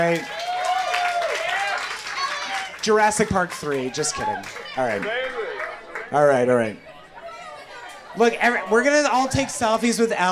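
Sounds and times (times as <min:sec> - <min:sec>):
speech: 0:00.0 - 0:00.4, 0:02.8 - 0:05.4, 0:06.1 - 0:06.9, 0:08.2 - 0:10.3
audience applause: 0:00.0 - 0:06.3.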